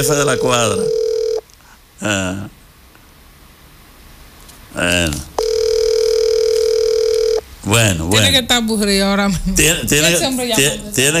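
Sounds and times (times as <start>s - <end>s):
speech: 0.0s - 1.0s, 2.0s - 2.6s, 4.7s - 5.3s, 7.6s - 11.1s
steady telephone line tone: 0.0s - 1.4s, 5.4s - 7.5s.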